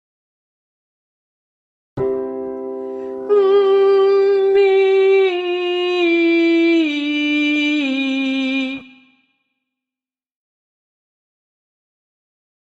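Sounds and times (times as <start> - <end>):
person humming a descending legato line: 3.2 - 9.1.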